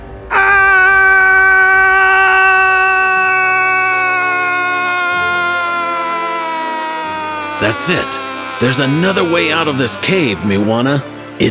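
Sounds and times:
laughter: 0.0s - 11.4s
scream in a cave: 0.0s - 11.4s
speech: 7.7s - 11.4s.

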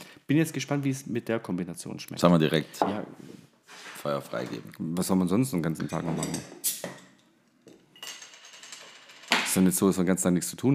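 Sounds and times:
speech: 0.3s - 6.7s, 9.5s - 10.7s
glasses clinking: 5.9s - 9.5s.

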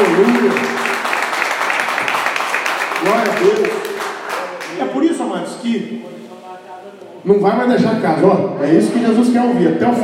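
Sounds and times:
audience applause: 0.0s - 5.1s
speech: 7.2s - 10.0s.

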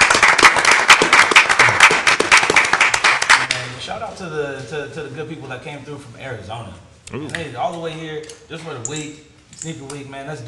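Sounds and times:
audience applause: 0.0s - 3.6s
speech: 4.2s - 10.4s.

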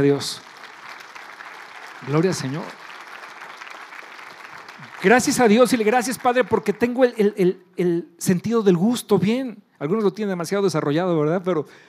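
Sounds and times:
speech: 0.0s - 0.5s, 2.0s - 2.8s, 5.0s - 11.8s
audience applause: 0.0s - 7.1s.

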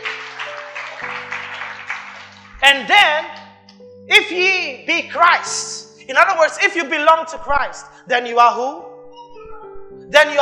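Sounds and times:
audience clapping: 0.0s - 3.6s
speech: 2.6s - 3.4s, 4.1s - 8.9s, 10.1s - 10.4s.

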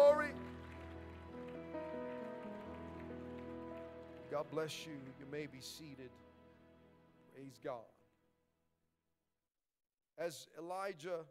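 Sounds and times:
audience clapping hands: 0.0s - 6.2s
sustained organ or keyboard chords: 0.0s - 7.9s
speech: 4.3s - 6.3s, 7.4s - 8.0s, 10.2s - 11.2s.

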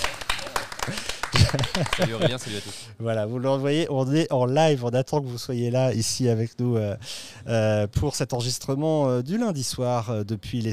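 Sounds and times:
crowd applause: 0.0s - 2.6s
laughter: 0.5s - 2.9s
speech: 0.9s - 10.7s.

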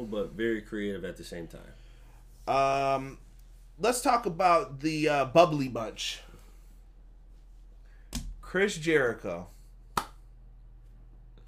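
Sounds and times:
speech: 0.0s - 1.8s, 2.5s - 6.3s, 8.5s - 9.6s
golf clap: 10.0s - 10.2s.

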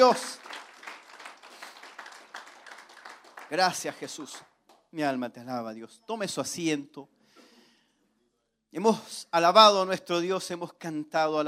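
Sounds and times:
speech: 0.0s - 0.4s, 3.5s - 7.2s, 8.7s - 11.4s
audience applause: 0.0s - 4.5s.

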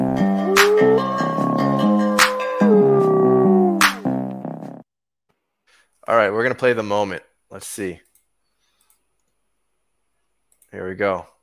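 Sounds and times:
howl: 0.4s - 4.0s
speech: 6.1s - 8.1s, 10.7s - 11.3s.

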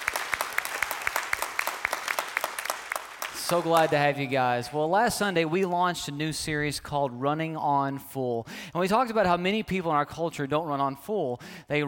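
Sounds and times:
church congregation applauding during an in-person worship service: 0.0s - 5.8s
speech: 3.5s - 11.8s.

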